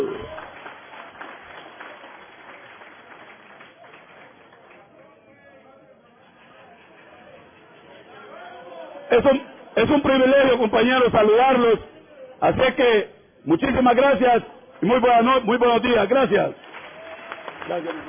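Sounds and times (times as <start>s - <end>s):
audience applause: 0.0s - 5.1s, 16.6s - 18.0s
murmuring crowd chatter: 0.0s - 10.9s, 11.6s - 12.5s
speech: 9.1s - 16.6s, 17.7s - 18.0s.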